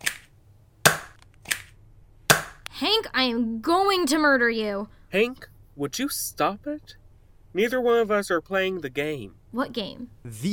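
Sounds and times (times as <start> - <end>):
dart gun firing in a comedy skit: 0.9 - 1.7, 2.3 - 2.8
speech: 2.8 - 7.0, 7.6 - 10.5.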